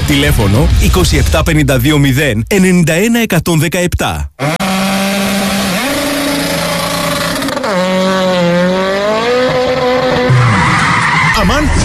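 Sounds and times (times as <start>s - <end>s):
rough car engine and road noise: 0.0s - 2.9s, 4.3s - 11.8s
speech: 0.1s - 4.7s
car tire screech after tire blowout: 4.4s - 11.8s.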